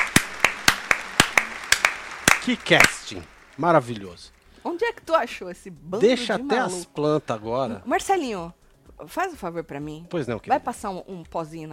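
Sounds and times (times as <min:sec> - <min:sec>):
hands clapping: 0:00.0 - 0:04.3
speech: 0:02.4 - 0:11.7.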